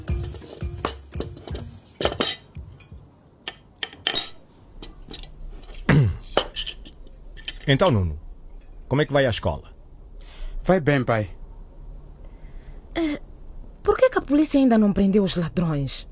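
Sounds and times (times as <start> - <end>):
forks and knives clinking against plates at family lunch: 0.1 - 8.0
speech: 7.7 - 8.2, 8.9 - 9.7, 10.7 - 11.4, 14.3 - 16.0.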